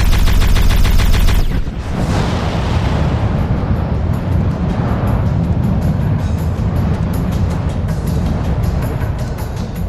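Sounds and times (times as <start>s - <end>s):
mounted gun firing: 0.0s - 2.0s
heavy blast with a long roaring rumble: 0.0s - 9.8s.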